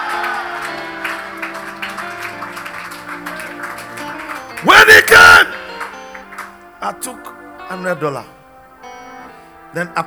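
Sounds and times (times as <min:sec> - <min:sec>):
audience applauding: 0:00.0 - 0:06.7
audience shouting: 0:04.6 - 0:05.6
speech: 0:06.8 - 0:08.4, 0:09.7 - 0:10.0.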